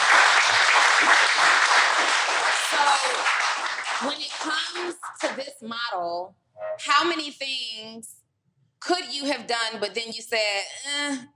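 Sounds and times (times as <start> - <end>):
audience applause: 0.0 - 5.4
speech: 3.0 - 8.2, 8.8 - 11.3.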